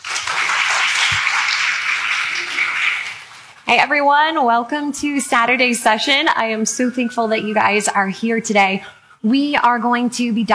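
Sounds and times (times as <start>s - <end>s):
audience applause welcoming a speaker at an apologetics conference: 0.0s - 3.6s
speech: 3.7s - 10.5s.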